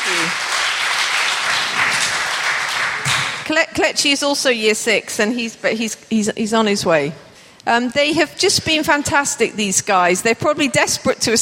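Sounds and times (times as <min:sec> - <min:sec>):
audience applause for pupils at a school gathering: 0:00.0 - 0:03.5
speech: 0:03.5 - 0:11.4.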